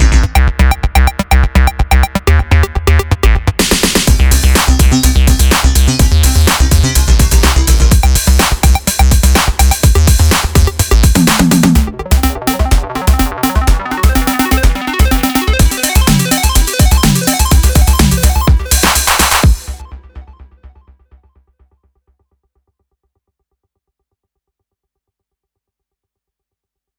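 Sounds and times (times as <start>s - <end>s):
synth sequencer: 0.2s - 20.5s.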